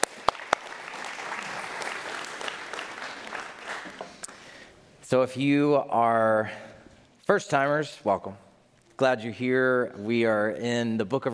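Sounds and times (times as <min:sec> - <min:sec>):
audience applause: 0:00.0 - 0:04.2
speech: 0:05.1 - 0:06.7, 0:07.3 - 0:08.4, 0:09.0 - 0:11.3.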